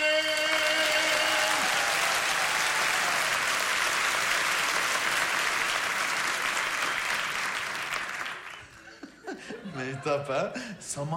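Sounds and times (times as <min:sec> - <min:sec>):
crowd applause: 0:00.1 - 0:09.0
laughter: 0:08.6 - 0:11.0
speech: 0:10.0 - 0:11.1.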